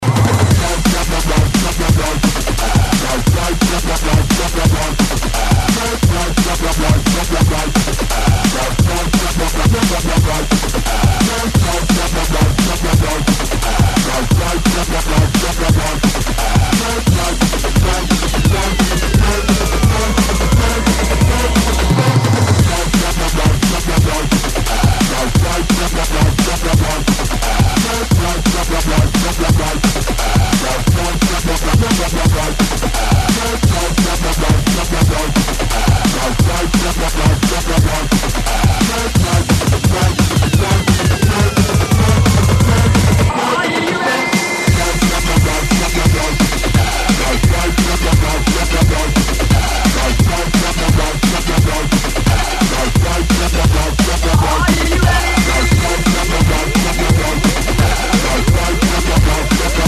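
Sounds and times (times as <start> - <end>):
jungle bassline: 0.0 - 43.6, 44.4 - 59.8
jungle drums: 0.0 - 59.8.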